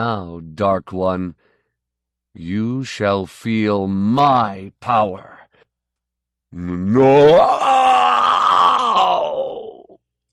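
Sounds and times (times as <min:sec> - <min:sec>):
speech: 0:00.0 - 0:01.5, 0:02.4 - 0:05.4, 0:06.5 - 0:07.7
hideous shriek through the hall: 0:07.0 - 0:09.9.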